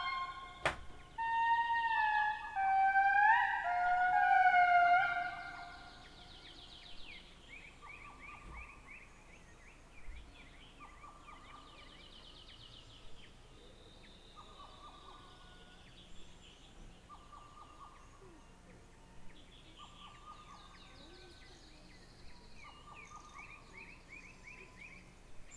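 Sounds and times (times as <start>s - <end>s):
indri calling in Madagascar: 0.0s - 6.3s.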